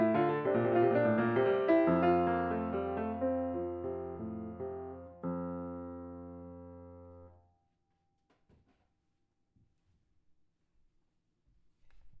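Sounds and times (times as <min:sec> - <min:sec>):
piano prelude in F major: 0:00.0 - 0:07.4.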